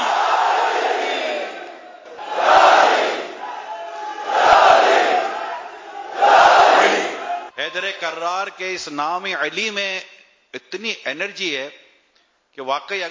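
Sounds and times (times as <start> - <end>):
crowd shouting in response to the Naara-e-Haidari slogan: 0.0 - 7.6
speech: 7.7 - 11.8, 12.6 - 13.0.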